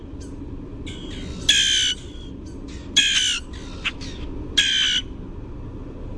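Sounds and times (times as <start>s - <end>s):
Common Grackle chaa chack squeak calls: 0.9s - 5.0s.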